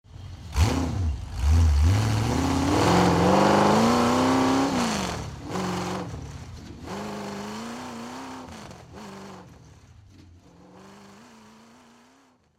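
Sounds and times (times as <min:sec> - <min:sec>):
Chevy V8 hot rod engine starting: 0:00.2 - 0:12.5.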